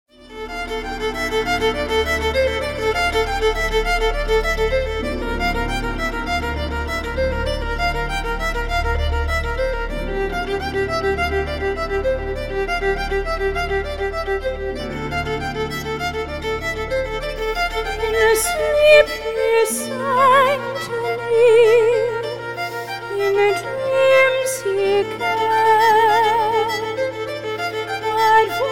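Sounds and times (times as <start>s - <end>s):
violin: 0.0s - 28.6s.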